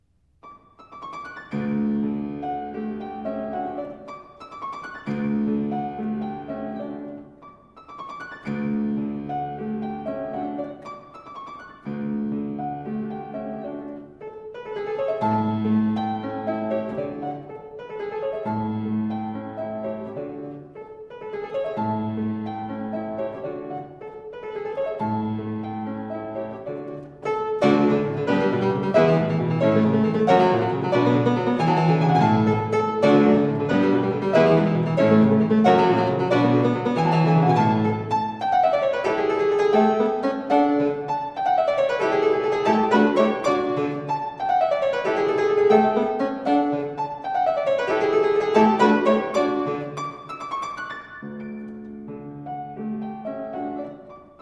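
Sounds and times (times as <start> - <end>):
solo fortepiano bagatelle: 0.0 - 54.4.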